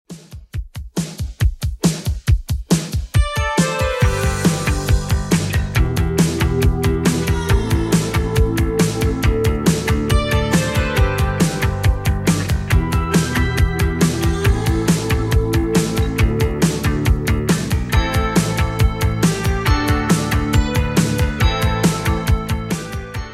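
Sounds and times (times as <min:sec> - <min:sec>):
80s style track at 138 BPM: 0:00.1 - 0:23.3.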